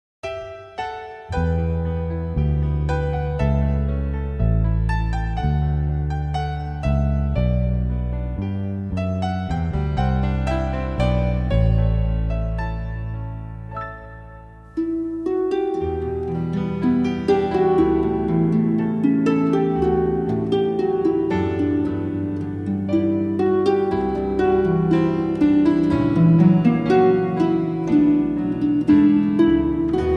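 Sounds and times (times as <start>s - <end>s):
harps: 0.3s - 30.1s.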